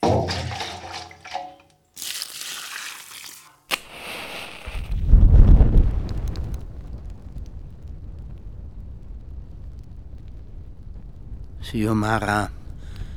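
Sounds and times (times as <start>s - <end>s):
spilled kerosene lit with a lighter flaring up and spreading: 3.7s - 13.1s
speech: 11.7s - 12.6s.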